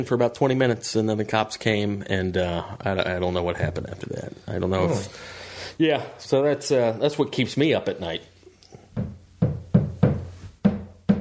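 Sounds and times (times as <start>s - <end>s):
speech: 0.0s - 8.3s
neighbor hammering: 9.0s - 11.1s.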